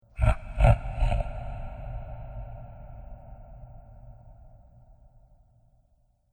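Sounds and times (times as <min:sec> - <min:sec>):
slow tired monster laughter: 0:00.0 - 0:04.5.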